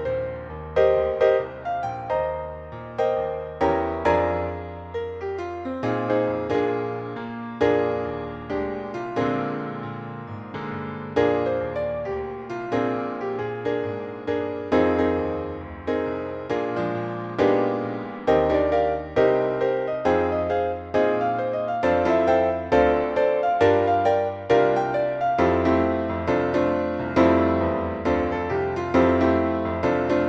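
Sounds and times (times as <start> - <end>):
piano note E flat: 0.0 - 30.2.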